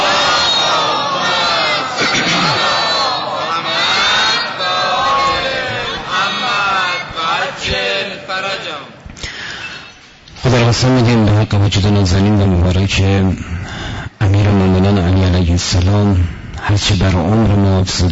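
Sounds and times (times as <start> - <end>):
crowd reciting salawat at a religious gathering honoring Imam Ali: 0.0 - 9.0
speech: 10.4 - 18.1.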